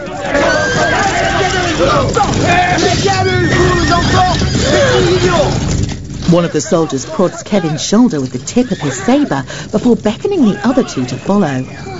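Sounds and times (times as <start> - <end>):
crowd babble and rumble: 0.0 - 11.9
horses neighing as riders rear them: 0.0 - 11.9
speech: 1.8 - 3.6, 6.3 - 11.9.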